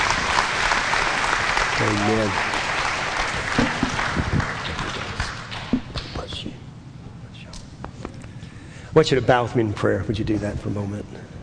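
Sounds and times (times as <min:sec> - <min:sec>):
audience applauding: 0:00.0 - 0:06.0
speech: 0:01.8 - 0:02.5, 0:09.0 - 0:11.3.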